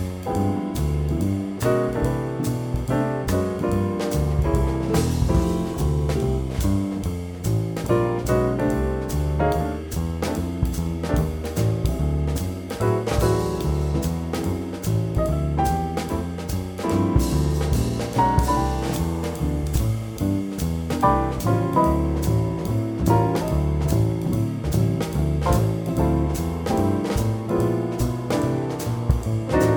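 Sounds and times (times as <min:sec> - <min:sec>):
bass trombone: 0:00.0 - 0:29.7.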